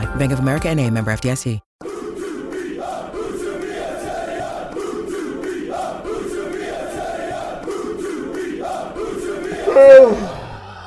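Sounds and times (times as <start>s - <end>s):
speech: 0.2s - 1.7s, 9.8s - 10.3s
laughter: 1.9s - 10.8s
long yawn: 9.7s - 10.5s.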